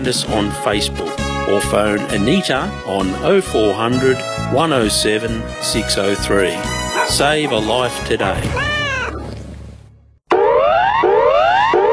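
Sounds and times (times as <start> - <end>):
speech: 0.0 - 8.8
bushfire alert siren: 10.3 - 11.9.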